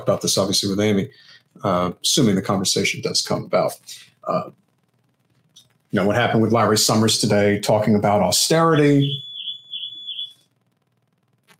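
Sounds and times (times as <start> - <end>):
speech: 0.0 - 4.6, 5.9 - 9.3
faint low rumble: 0.0 - 8.8, 10.3 - 11.5
high-pitched electronic alarm: 8.4 - 10.6.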